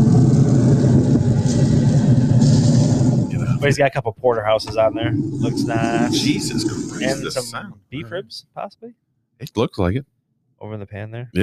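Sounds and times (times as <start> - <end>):
Traeger grill burner roaring: 0.0 - 3.8, 4.6 - 7.5
speech: 3.6 - 11.4.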